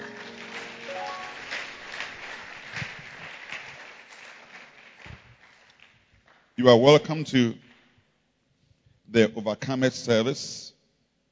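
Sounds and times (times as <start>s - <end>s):
audience clapping: 0.0s - 6.6s
speech: 6.6s - 7.6s, 9.1s - 10.7s.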